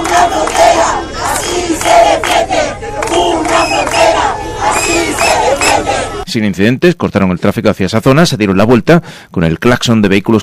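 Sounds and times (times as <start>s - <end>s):
protest crowd shouting: 0.0s - 6.3s
speech: 6.3s - 10.4s.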